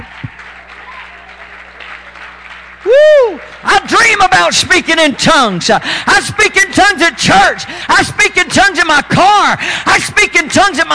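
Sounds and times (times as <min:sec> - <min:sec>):
many hands clapping: 0:00.0 - 0:04.3
speech: 0:04.2 - 0:10.9.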